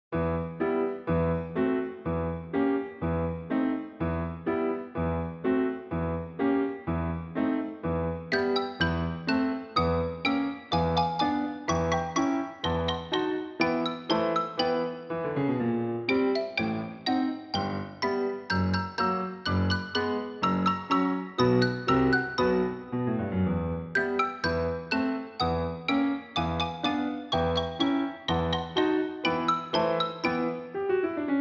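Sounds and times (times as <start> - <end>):
fast classical ballet piece: 0.2 - 31.3.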